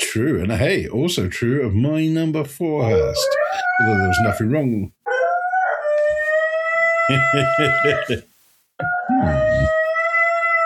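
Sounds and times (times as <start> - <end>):
speech: 0.1 - 5.0, 7.1 - 9.8
lonely dog howling: 3.2 - 4.4, 5.1 - 8.1, 8.8 - 10.6.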